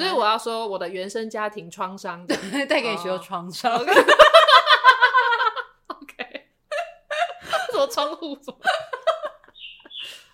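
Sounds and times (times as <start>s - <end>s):
speech: 0.0s - 4.9s, 7.8s - 8.9s
laughter: 3.7s - 10.2s
small birds chirping: 9.4s - 10.3s.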